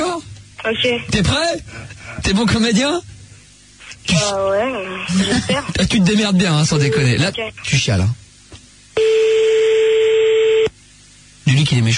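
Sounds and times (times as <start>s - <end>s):
speech: 0.6s - 3.1s, 4.0s - 8.2s, 11.5s - 11.9s
steady electronic telephone tone as a call is placed: 9.0s - 10.7s.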